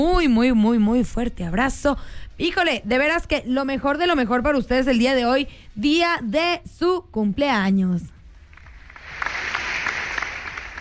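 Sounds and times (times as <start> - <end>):
speech: 0.0 - 8.1
crowd applause sound effect: 8.6 - 10.7.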